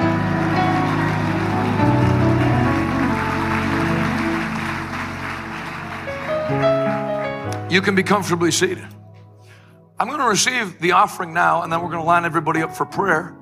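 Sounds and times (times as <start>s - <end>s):
audience hand clapping: 0.0s - 7.7s
speech: 7.7s - 9.0s, 10.0s - 13.3s.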